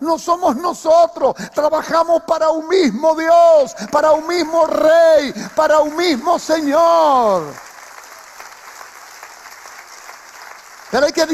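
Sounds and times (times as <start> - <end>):
speech: 0.0 - 7.7, 10.9 - 11.3
audience applause: 3.8 - 11.3.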